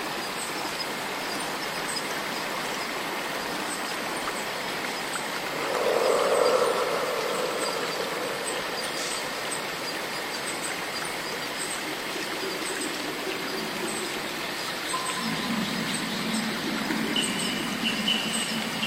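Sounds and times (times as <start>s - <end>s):
dense insect noise in a rainforest swamp: 0.0s - 18.8s
thin steady cicada whine: 3.2s - 18.8s
low droning hum: 5.4s - 10.2s, 14.9s - 18.8s.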